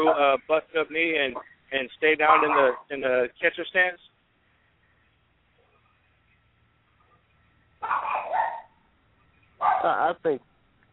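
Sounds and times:
dog playing and barking: 0.0 - 0.3, 2.3 - 2.9, 7.0 - 8.8, 9.6 - 10.0
speech: 0.0 - 4.2, 7.8 - 8.4, 9.6 - 10.5.

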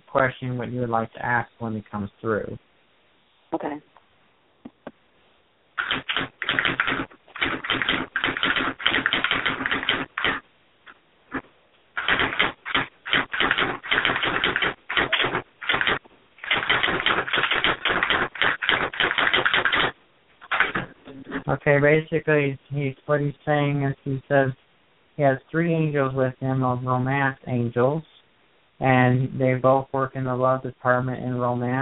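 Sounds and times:
speech: 0.1 - 2.7, 3.5 - 4.0, 21.5 - 24.6, 25.2 - 28.1, 28.8 - 31.8
typewriter typing: 5.8 - 10.4, 12.0 - 21.0.

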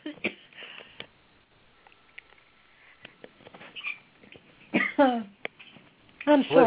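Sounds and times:
coughing and choking fit: 4.7 - 5.2.

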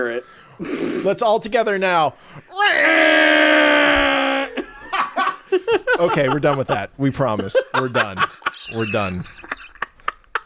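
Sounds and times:
speech: 0.0 - 3.5, 5.7 - 9.8
voices imitating a monster roar: 2.6 - 4.5
laughter: 4.2 - 10.4.

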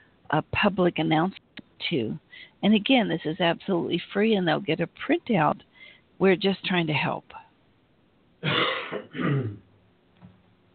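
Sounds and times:
speech: 0.3 - 7.4
person coughing off mic: 8.4 - 9.6.

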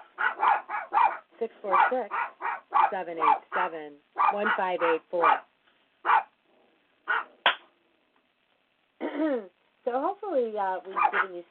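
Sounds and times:
dog barking: 0.0 - 6.4, 7.0 - 7.4, 10.9 - 11.4
speech: 1.4 - 2.3, 2.9 - 5.5, 9.2 - 9.5, 10.4 - 11.4.

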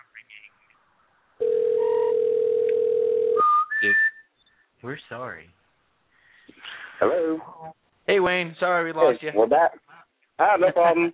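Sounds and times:
buzzy telephone line tone: 1.4 - 3.5
speech: 4.8 - 5.6, 7.0 - 11.1.

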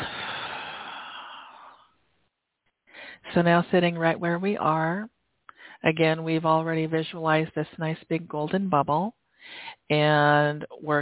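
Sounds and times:
deep breath released during a guided meditation: 0.0 - 2.0
faint breath: 0.0 - 2.0, 2.8 - 3.3, 5.5 - 5.8, 9.3 - 9.9
speech: 3.4 - 5.1, 5.8 - 11.0.

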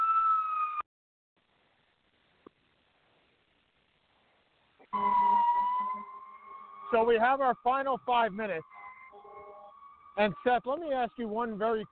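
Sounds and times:
emergency siren wailing on a street in Atlanta: 0.0 - 0.8, 4.9 - 10.6
speech: 6.9 - 8.8, 10.2 - 11.9.

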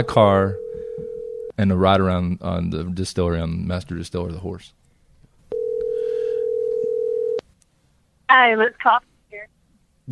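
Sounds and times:
speech: 0.0 - 0.6, 1.6 - 4.8, 8.3 - 10.1
telephone ringing tone on the line: 0.5 - 1.5, 5.5 - 7.4.

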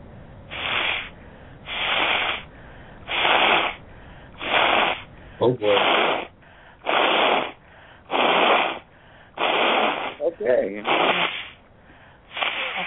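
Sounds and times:
person blowing nose: 0.5 - 2.5, 3.1 - 3.8, 4.4 - 5.1, 5.7 - 10.2, 10.8 - 11.6, 12.3 - 12.8
speech: 5.4 - 6.3, 10.6 - 11.0.

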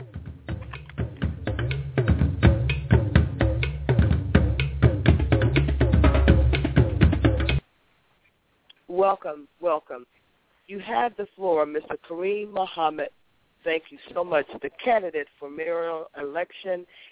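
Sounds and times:
drum roll sound effect welcoming a speaker: 0.0 - 7.6
speech: 9.1 - 17.1.

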